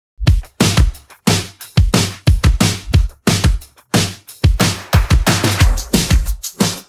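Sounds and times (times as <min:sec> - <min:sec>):
drum pattern: 0:00.2 - 0:06.8.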